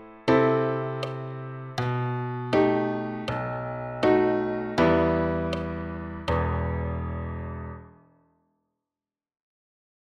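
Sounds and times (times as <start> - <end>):
solo piano: 0.0 - 8.2.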